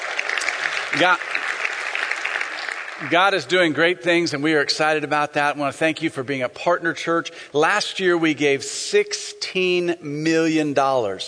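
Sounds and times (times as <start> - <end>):
audience hand clapping: 0.0 - 3.8
speech: 0.9 - 1.3, 3.0 - 11.2.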